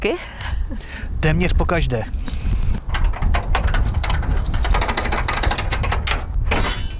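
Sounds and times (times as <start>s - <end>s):
speech: 0.0s - 2.3s
steady heavy rumble of wind: 0.0s - 6.9s
keys unlocking and opening chapel door: 1.5s - 6.4s.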